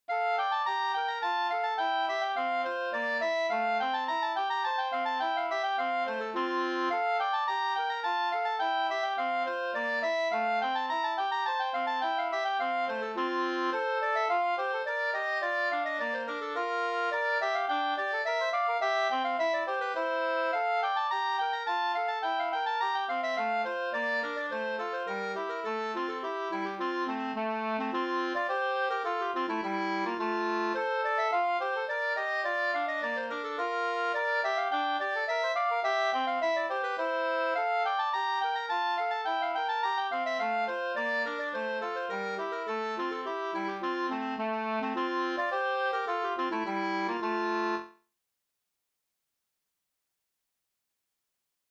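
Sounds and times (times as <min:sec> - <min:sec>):
two-part slangpolska: 0:00.1 - 0:48.0.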